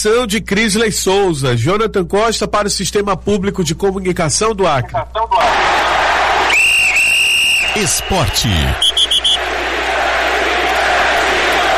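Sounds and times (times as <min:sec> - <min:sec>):
speech: 0:00.0 - 0:05.8, 0:07.7 - 0:08.9
crowd-like noise: 0:05.0 - 0:11.7
sharp whistle marking the start of a sports segment: 0:06.5 - 0:09.4.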